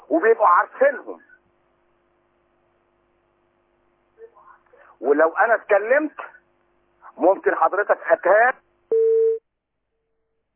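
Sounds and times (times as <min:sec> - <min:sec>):
speech: 0:00.1 - 0:01.3, 0:05.0 - 0:06.3, 0:07.2 - 0:08.6
phone call drop beep on a radio call-in line: 0:08.9 - 0:09.4.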